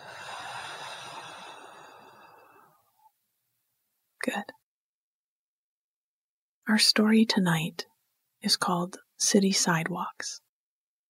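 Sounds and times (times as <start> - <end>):
breath let out audibly through the mouth: 0.0 - 2.8
speech: 4.2 - 4.6, 6.7 - 10.4.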